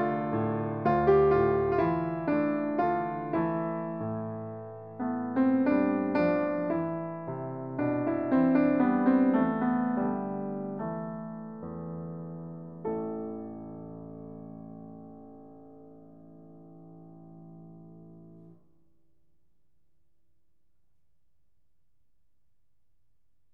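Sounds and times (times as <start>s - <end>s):
Kurdish melody on piano: 0.0s - 18.6s.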